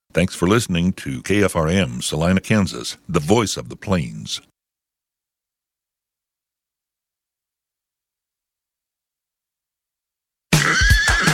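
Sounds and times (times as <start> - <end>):
speech: 0.2 - 4.5
horse neighing: 10.5 - 11.3.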